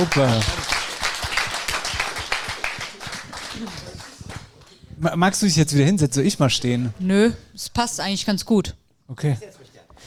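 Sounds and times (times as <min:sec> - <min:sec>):
speech: 0:00.0 - 0:00.6, 0:05.0 - 0:10.0
audience applause: 0:00.0 - 0:04.8.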